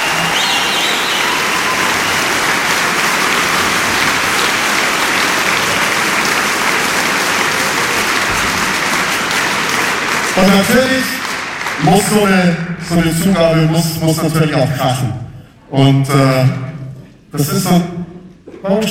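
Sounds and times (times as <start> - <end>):
concert hall audience applause in the Metropolishalle: 0.0 - 12.5
speech: 10.5 - 11.1, 11.8 - 16.7, 17.3 - 18.8.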